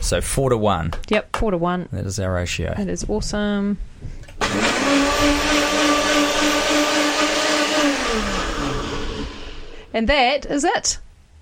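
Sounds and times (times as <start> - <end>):
speech: 0.1 - 5.6, 9.9 - 11.0
Nutribullet blender blending sunflower seeds and water: 4.4 - 9.9.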